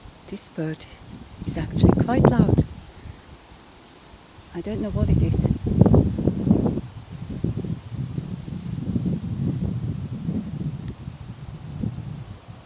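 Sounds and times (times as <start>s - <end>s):
wind blowing outdoors: 0.0s - 12.6s
speech: 0.3s - 2.8s, 4.6s - 5.8s.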